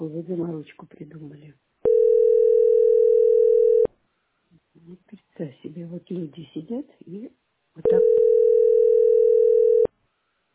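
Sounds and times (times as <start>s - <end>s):
speech: 0.0s - 2.6s, 4.8s - 8.8s
steady mid-pitched telephone beep: 1.9s - 3.9s, 7.8s - 9.9s.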